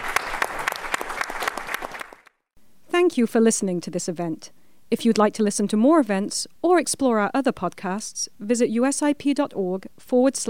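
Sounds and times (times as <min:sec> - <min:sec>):
audience applause at the end of an event: 0:00.0 - 0:02.3
speech: 0:03.1 - 0:10.4.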